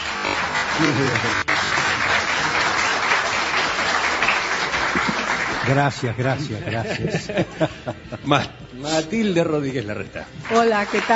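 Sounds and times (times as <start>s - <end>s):
audience applause: 0.0s - 7.5s, 10.3s - 11.1s
laughter: 0.0s - 11.0s
speech: 0.8s - 1.7s, 5.7s - 11.1s.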